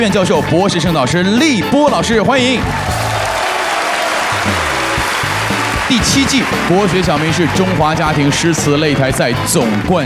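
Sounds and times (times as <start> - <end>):
speech: 0.0 - 3.0, 5.9 - 10.0
studio audience applause at a family poetry competition: 2.6 - 10.0.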